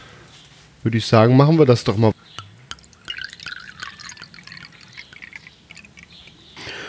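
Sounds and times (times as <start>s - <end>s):
speech: 0.8s - 2.2s
faint high whine: 2.1s - 5.5s
Riesling Spätlese wine poured into a glass: 2.1s - 6.5s.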